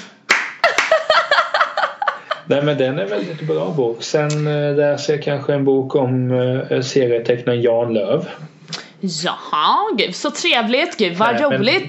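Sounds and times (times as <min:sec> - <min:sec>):
applause, hands clapping: 0:00.0 - 0:01.2
laughter: 0:00.6 - 0:03.9
speech: 0:02.5 - 0:11.8.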